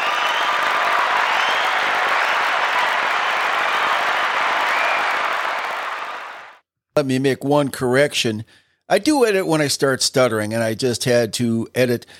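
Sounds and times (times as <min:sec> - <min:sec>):
audience applause: 0:00.0 - 0:06.6
speech: 0:07.0 - 0:12.1.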